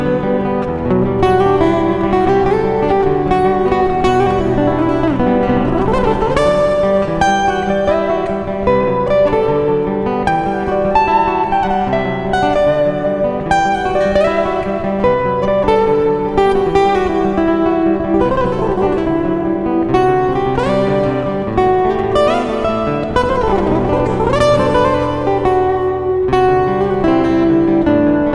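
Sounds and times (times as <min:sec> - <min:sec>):
E minor 9th chord on acoustic guitar: 0:00.0 - 0:28.0.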